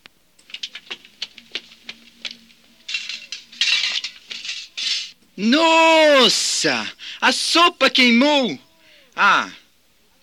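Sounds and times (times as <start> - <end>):
metal milk pail dropped and clattering: 2.9 - 5.1
rough scraping: 2.9 - 5.2
speech: 5.4 - 8.6, 9.2 - 9.6.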